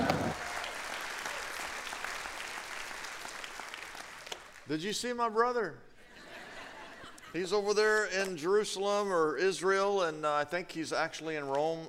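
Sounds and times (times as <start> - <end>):
audience applause welcoming a preacher to the stage: 0.0 - 4.6
speech: 4.7 - 5.9, 7.3 - 11.8
laughter: 6.0 - 7.8.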